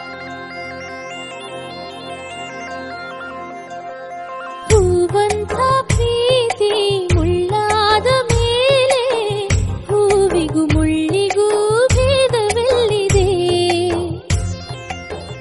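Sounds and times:
Kannada songs: 4.6 - 14.5.

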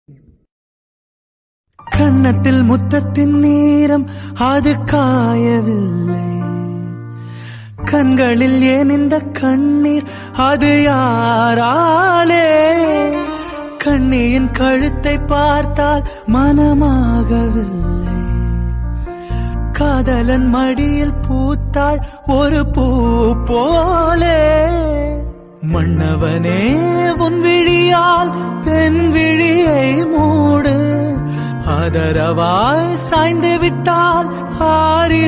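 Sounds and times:
heart-touching romantic background music: 1.8 - 35.2
person singing in Hindi: 1.9 - 7.0, 7.8 - 18.8, 19.5 - 35.2.

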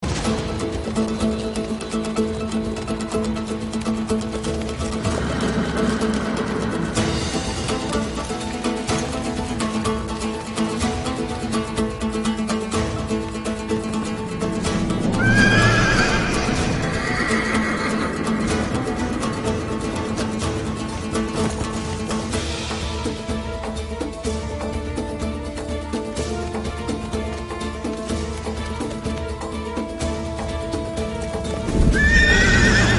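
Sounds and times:
horse riding background music: 0.0 - 32.9.

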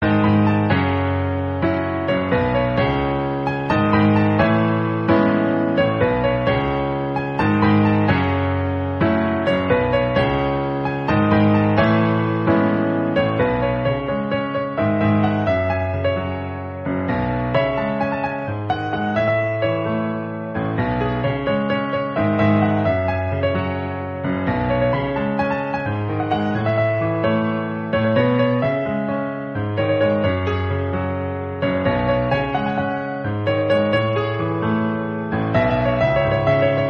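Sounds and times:
piano: 0.0 - 36.8.

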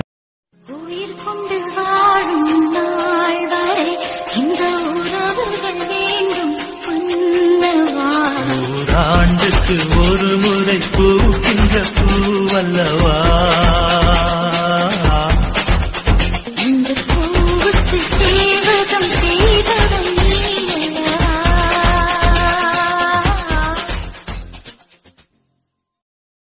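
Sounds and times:
Tamil song: 0.6 - 24.0.

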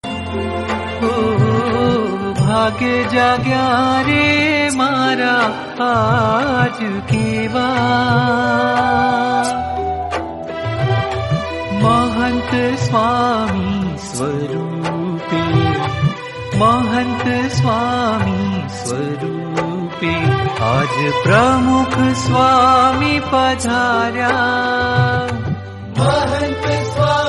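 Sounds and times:
Gujarati kirtan bhajan devotional singing: 1.0 - 27.2.

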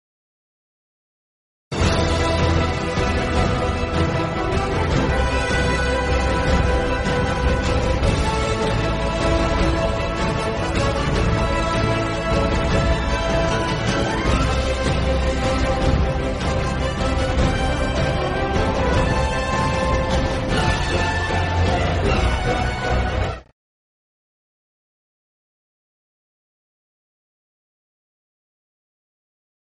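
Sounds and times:
background music: 1.7 - 23.5.

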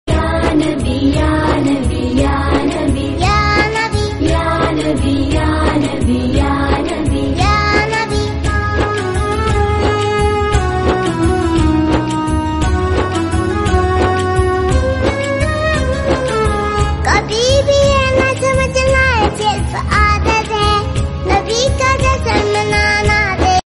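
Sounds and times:
islamic song: 0.1 - 23.6.

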